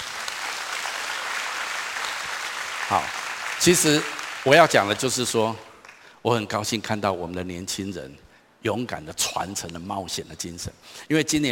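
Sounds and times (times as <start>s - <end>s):
church congregation applause: 0.0s - 6.1s
speech: 2.9s - 11.5s.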